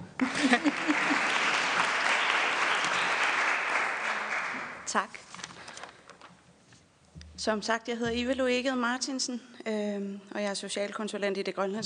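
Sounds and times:
laughter: 0:00.2 - 0:03.2
audience clapping: 0:00.2 - 0:05.0
speech: 0:04.9 - 0:05.3, 0:07.4 - 0:11.8.

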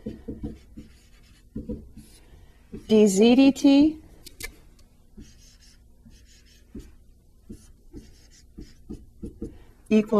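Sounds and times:
writing strokes scratching as math problem values are written: 0:00.0 - 0:02.2, 0:05.2 - 0:06.9, 0:07.5 - 0:09.4
speech: 0:02.9 - 0:04.0, 0:10.0 - 0:10.1.

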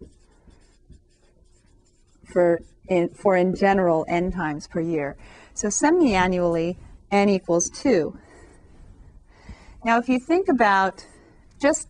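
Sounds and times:
writing a formula by hand during a math lecture: 0:00.0 - 0:04.6
speech: 0:02.3 - 0:08.2, 0:09.8 - 0:11.8.

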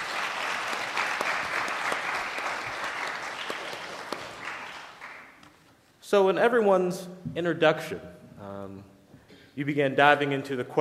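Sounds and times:
audience applause for a panel: 0:00.0 - 0:05.4
speech: 0:06.1 - 0:08.9, 0:09.6 - 0:10.7.

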